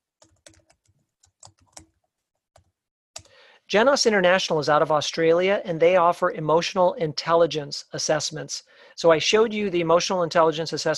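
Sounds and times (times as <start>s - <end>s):
typing on a computer keyboard entering a word into a chat: 0.2s - 2.0s
speech: 3.7s - 10.9s.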